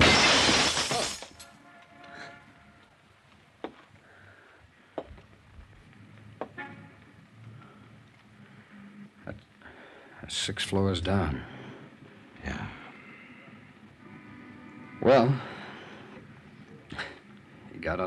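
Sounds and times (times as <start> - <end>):
window glass shattering: 0.0 - 1.5
speech: 10.3 - 11.5, 15.1 - 15.4.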